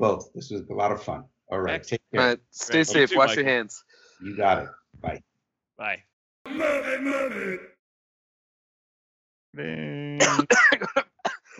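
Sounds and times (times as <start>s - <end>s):
speech: 0.0s - 7.7s, 9.5s - 11.1s
person groaning: 6.5s - 7.8s
person coughing after inhaling strong peppermint from a diffuser: 10.2s - 11.5s.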